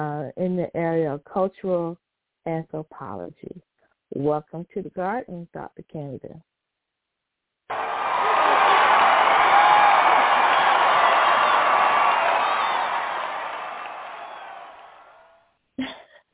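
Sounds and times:
speech: 0.0s - 6.5s
crowd cheering and applauding: 7.7s - 15.4s.

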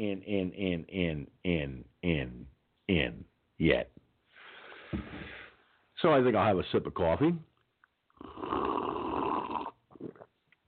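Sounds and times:
speech: 0.0s - 4.0s, 6.0s - 7.5s, 8.2s - 9.0s
person burping: 8.2s - 10.4s.

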